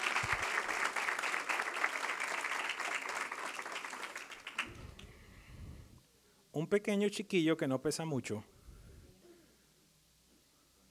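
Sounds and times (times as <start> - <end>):
audience applause: 0.0 - 5.0
speech: 6.6 - 8.5.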